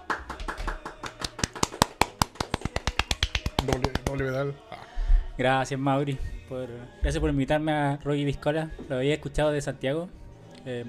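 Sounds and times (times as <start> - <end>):
applause for a guest: 0.0 - 4.2
speech: 3.6 - 4.8, 5.4 - 10.8.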